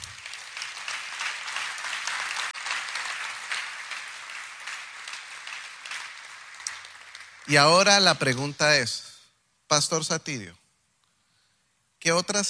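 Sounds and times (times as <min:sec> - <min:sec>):
applause: 0:00.0 - 0:08.6
speech: 0:07.5 - 0:09.1, 0:09.7 - 0:10.6, 0:12.0 - 0:12.4.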